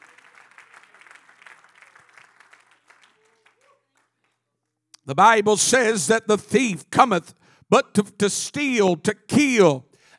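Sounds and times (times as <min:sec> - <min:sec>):
audience clapping hands: 0:00.0 - 0:04.5
speech: 0:05.1 - 0:09.9.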